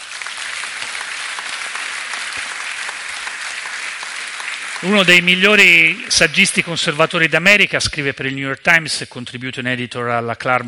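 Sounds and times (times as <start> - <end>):
audience applause: 0.0 - 6.1
speech: 4.8 - 10.6.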